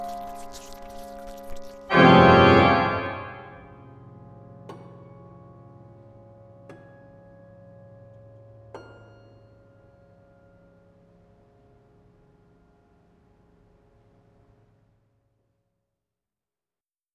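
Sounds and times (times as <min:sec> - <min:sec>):
piano: 0:00.0 - 0:10.4
organ: 0:01.9 - 0:03.7.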